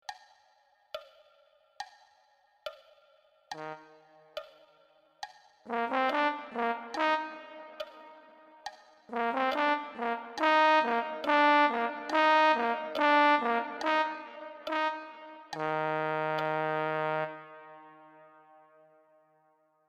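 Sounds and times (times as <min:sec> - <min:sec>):
music coda: 0:05.7 - 0:18.8.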